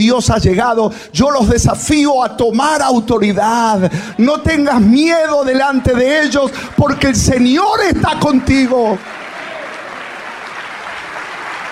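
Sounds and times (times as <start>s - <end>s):
speech: 0.0s - 9.2s
audience applause: 8.5s - 11.7s.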